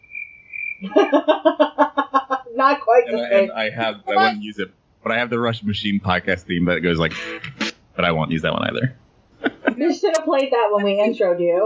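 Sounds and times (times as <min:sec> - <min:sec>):
crickets chirping sound effect: 0:00.0 - 0:01.4
speech: 0:00.8 - 0:01.7, 0:02.6 - 0:09.0, 0:09.8 - 0:11.6
laughter: 0:00.8 - 0:07.7, 0:09.4 - 0:10.1.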